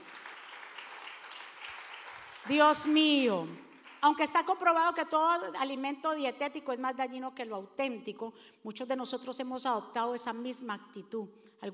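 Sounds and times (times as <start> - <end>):
applause: 0.0 - 4.8
speech: 2.4 - 11.7.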